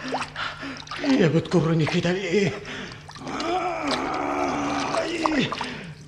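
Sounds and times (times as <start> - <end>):
sea water splashing around a fishing net being hauled: 0.0 - 2.4, 3.0 - 6.0
speech: 1.0 - 3.4
person groaning and straining: 3.2 - 5.7.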